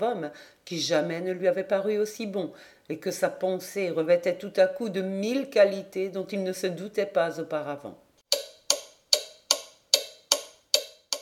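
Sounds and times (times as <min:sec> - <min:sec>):
speech: 0:00.0 - 0:08.0
large clock ticking steadily: 0:08.3 - 0:11.2.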